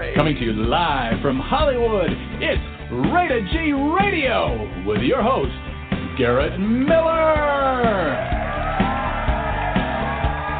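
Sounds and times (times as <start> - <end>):
speech: 0.2 - 8.4
crowd cheering and whooping: 7.8 - 10.5.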